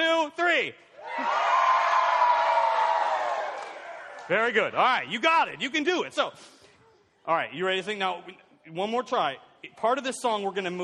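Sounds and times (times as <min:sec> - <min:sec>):
speech: 0:00.3 - 0:01.4, 0:04.3 - 0:06.6, 0:07.2 - 0:10.8
large crowd cheering and whooping: 0:01.0 - 0:04.3.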